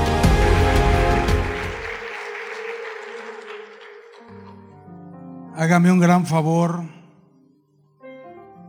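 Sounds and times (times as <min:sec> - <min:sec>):
loud audience applause: 0:00.1 - 0:04.8
speech: 0:05.6 - 0:07.0.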